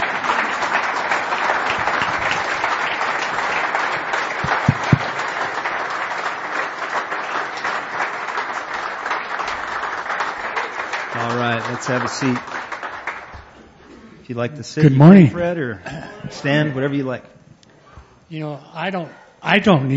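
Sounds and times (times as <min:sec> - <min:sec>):
audience applause: 0:00.0 - 0:13.5
speech: 0:11.8 - 0:12.6, 0:14.3 - 0:17.4, 0:18.3 - 0:19.9.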